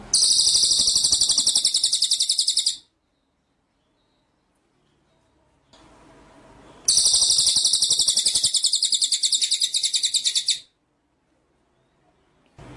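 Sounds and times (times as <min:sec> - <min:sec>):
white-rumped shama rattling trill: 0:00.2 - 0:02.8, 0:06.9 - 0:10.7.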